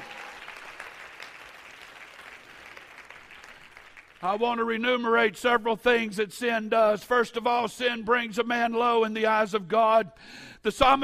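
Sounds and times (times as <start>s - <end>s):
audience clapping hands: 0.0s - 4.5s
speech: 4.2s - 11.0s.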